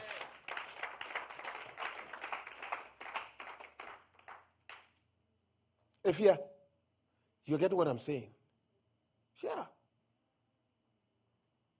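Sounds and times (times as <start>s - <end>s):
audience clapping: 0.0s - 5.0s
speech: 6.0s - 6.5s, 7.4s - 8.4s, 9.4s - 9.8s.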